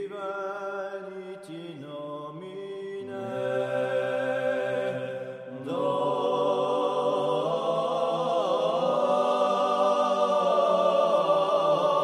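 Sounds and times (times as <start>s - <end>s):
Corsican polyphonic sanctus singing: 3.0s - 12.0s.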